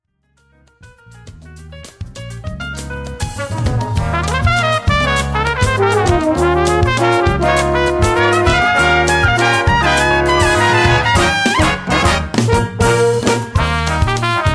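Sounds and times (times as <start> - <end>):
Christmas song: 3.4 - 14.4.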